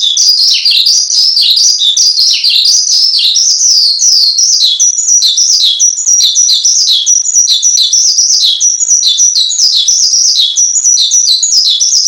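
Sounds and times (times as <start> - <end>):
Javan bush lark singing: 0.0 - 12.0.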